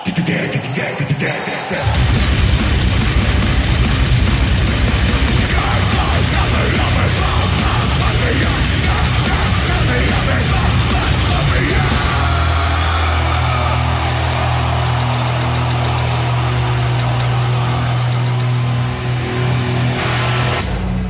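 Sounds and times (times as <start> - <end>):
pounding drums: 0.0 - 19.4
distorted guitars in a live heavy metal song: 0.0 - 21.0
shouted vocals: 5.3 - 19.5.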